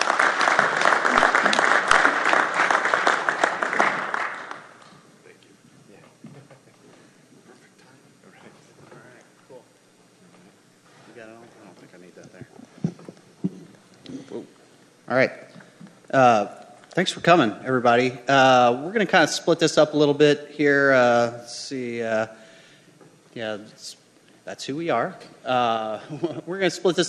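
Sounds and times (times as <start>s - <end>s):
audience applause: 0.0s - 5.1s
speech: 15.2s - 15.4s, 16.1s - 22.4s, 23.4s - 27.0s.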